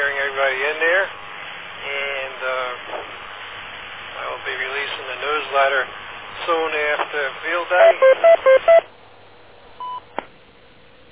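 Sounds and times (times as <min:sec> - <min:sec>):
speech: 0:00.0 - 0:01.2, 0:04.4 - 0:09.0
radio timer time-out beeps: 0:07.8 - 0:08.8.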